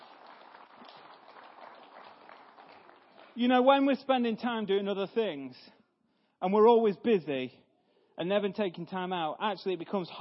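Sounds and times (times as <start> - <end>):
audience clapping: 0.0 - 3.9
speech: 3.4 - 5.8, 6.4 - 7.6, 8.2 - 10.1.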